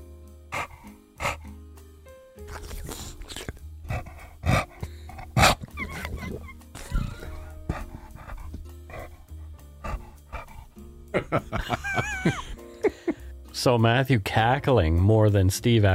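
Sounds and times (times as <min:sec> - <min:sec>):
dog breathing heavily and wetly: 0:00.5 - 0:01.6, 0:02.5 - 0:12.4
dog whining: 0:02.6 - 0:09.1
laughter: 0:11.1 - 0:13.1
speech: 0:11.2 - 0:12.4, 0:13.6 - 0:15.9.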